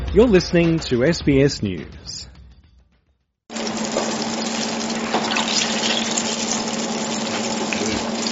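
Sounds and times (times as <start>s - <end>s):
speech: 0.1s - 2.3s
eggplant strips sizzling in frying oil: 3.5s - 8.3s.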